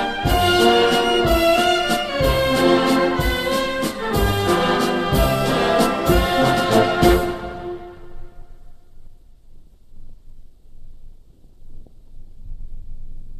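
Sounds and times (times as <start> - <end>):
regimental band playing a slow march: 0.0 - 8.3.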